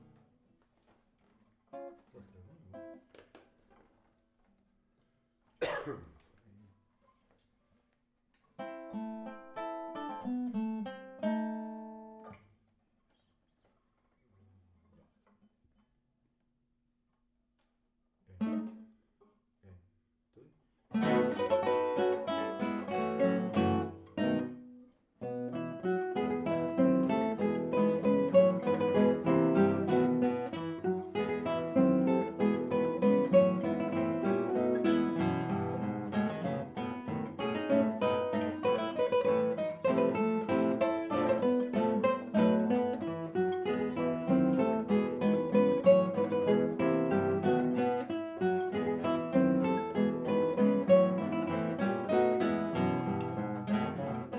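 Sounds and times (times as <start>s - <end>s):
guitar: 0.0s - 16.4s, 17.6s - 54.3s.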